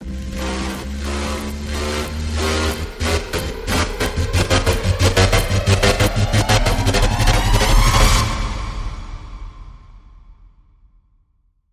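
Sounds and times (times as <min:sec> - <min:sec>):
rising rhythmic gyration effect: 0:00.0 - 0:08.6.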